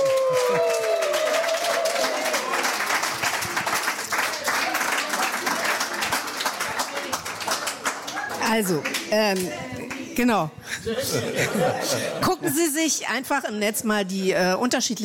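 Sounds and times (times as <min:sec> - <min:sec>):
audience applause: 0:00.0 - 0:10.0
speech: 0:08.5 - 0:15.0
laughter: 0:10.6 - 0:12.8.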